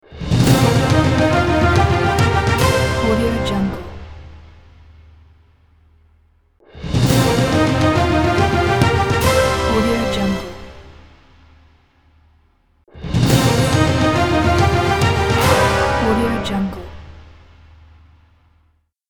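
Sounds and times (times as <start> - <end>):
quiz show winning jingle: 0.4 - 4.4, 7.1 - 11.2, 13.3 - 17.4.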